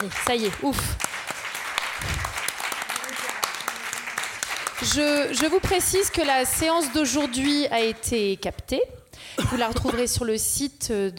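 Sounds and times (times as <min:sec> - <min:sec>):
speech: 0:00.0 - 0:01.1, 0:04.8 - 0:11.1
audience applause: 0:00.0 - 0:07.8.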